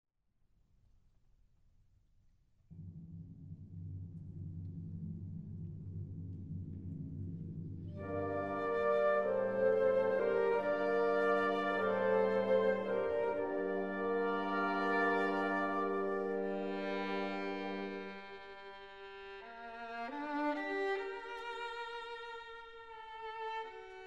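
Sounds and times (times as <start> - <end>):
violin concerto: 8.0 - 24.0.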